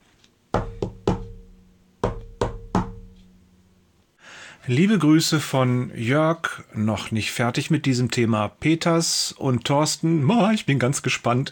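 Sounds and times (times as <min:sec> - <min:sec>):
knocking on a door: 0:00.6 - 0:03.3
speech: 0:04.7 - 0:11.5.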